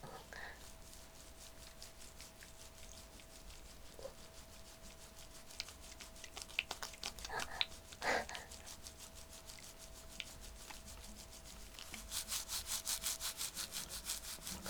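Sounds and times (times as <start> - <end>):
chestnuts being rubbed together: 2.7 - 14.6.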